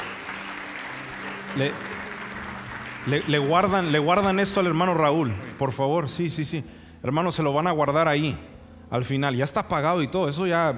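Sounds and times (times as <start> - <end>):
audience applause: 0.0 - 5.8
speech: 1.5 - 2.0, 3.0 - 10.7.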